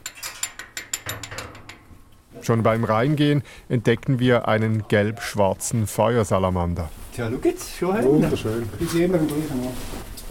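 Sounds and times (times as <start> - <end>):
iron gate of a cave being unlocked: 0.0 - 1.9
speech: 2.4 - 10.3.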